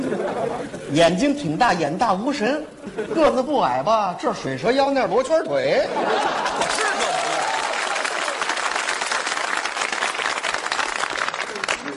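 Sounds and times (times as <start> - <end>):
laughter: 0.0 - 0.9, 5.8 - 8.2
speech: 0.9 - 6.7
audience applause: 6.4 - 11.9.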